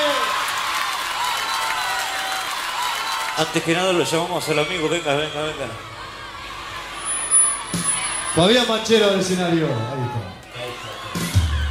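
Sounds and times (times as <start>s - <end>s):
loud audience applause: 0.0s - 11.6s
speech: 3.4s - 5.9s, 8.4s - 10.4s.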